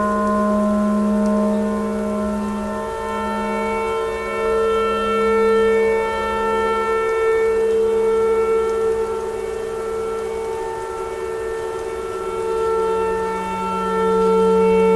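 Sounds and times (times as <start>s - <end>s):
clarinet tornado siren noise: 0.0s - 14.9s.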